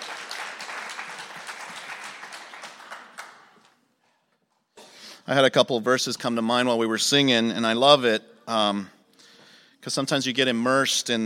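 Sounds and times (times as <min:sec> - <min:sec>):
audience applause: 0:00.0 - 0:03.8
speech: 0:05.3 - 0:09.0, 0:09.8 - 0:11.2.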